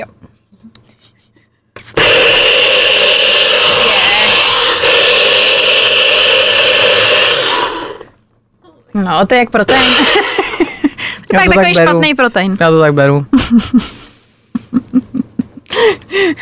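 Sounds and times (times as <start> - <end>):
blender whirring while making a smoothie: 1.9 - 8.2, 9.7 - 10.4
speech: 9.0 - 10.3, 11.3 - 13.9, 15.8 - 16.3
laughter: 9.8 - 11.2, 14.6 - 15.7.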